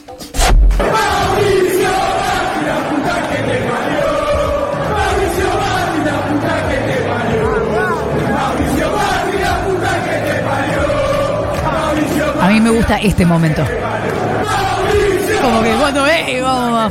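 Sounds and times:
football fans singing a chant in a stadium: 0.8 - 16.8
speech: 12.6 - 16.8.

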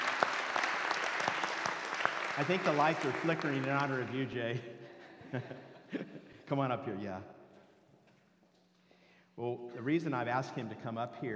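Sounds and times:
crowd clapping: 0.0 - 4.4
speech: 2.4 - 7.4, 9.4 - 11.3.

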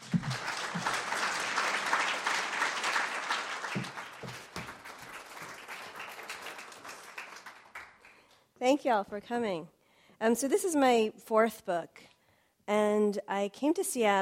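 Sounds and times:
audience applause welcoming an author at Town Hall Seattle: 0.0 - 8.2
speech: 8.6 - 12.0, 12.7 - 14.2.

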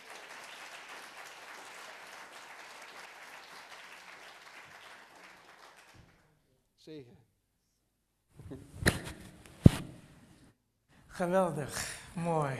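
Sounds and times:
audience applause: 0.0 - 6.3
speech: 6.8 - 7.3, 8.5 - 8.8, 11.2 - 12.5.

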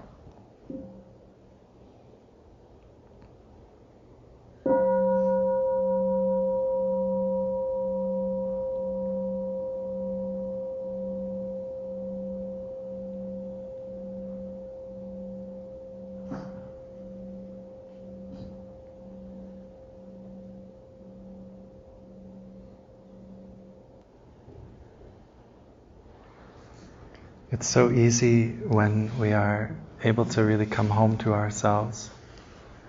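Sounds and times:
bell ringing: 4.7 - 24.0
speech: 27.6 - 32.2.

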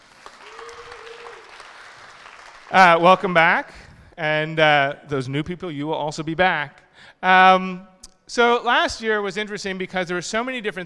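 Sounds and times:
audience applause at Mozilla Festival 2013 in London: 0.0 - 2.8
speech: 2.7 - 10.8.

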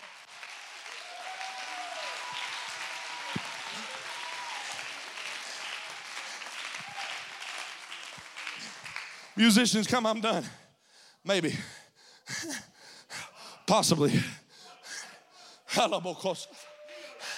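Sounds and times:
audience clapping hands: 0.0 - 9.9
people shouting and whooping: 0.9 - 4.9
speech: 9.4 - 10.6, 11.2 - 11.7, 12.4 - 12.7, 13.7 - 14.4, 15.8 - 16.6.

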